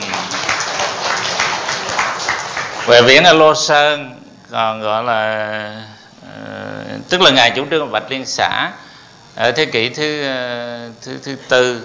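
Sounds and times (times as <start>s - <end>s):
group applause: 0.0s - 3.2s
speech: 2.9s - 11.8s.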